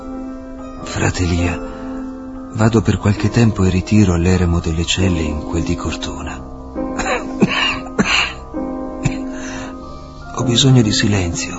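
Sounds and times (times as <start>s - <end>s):
speech: 0.8s - 1.7s, 2.5s - 6.4s, 10.4s - 11.5s
coughing: 7.0s - 8.4s, 9.0s - 9.6s.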